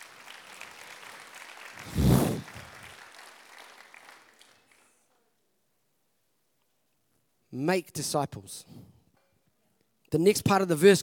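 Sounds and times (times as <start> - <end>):
audience applause: 0.0 - 4.8
speech: 7.6 - 9.0, 10.1 - 11.0.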